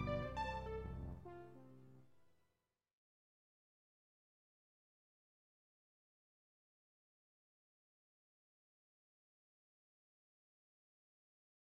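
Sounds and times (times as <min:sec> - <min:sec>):
polyrhythmic syncopated folk melody: 0:00.0 - 0:01.0.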